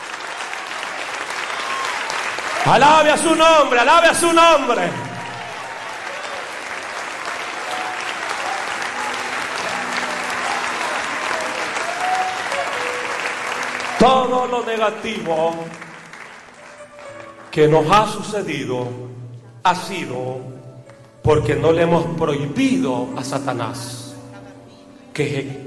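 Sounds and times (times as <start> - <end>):
audience applauding: 0.0 - 18.4
speech: 2.6 - 5.0, 14.0 - 15.8, 17.5 - 20.6, 21.2 - 24.0, 25.2 - 25.6.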